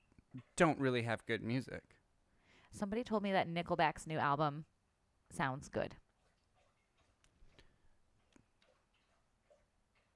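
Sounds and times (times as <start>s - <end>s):
speech: 0.4s - 2.0s, 2.7s - 4.7s, 5.3s - 6.0s
dog lapping drinking water: 6.1s - 10.1s.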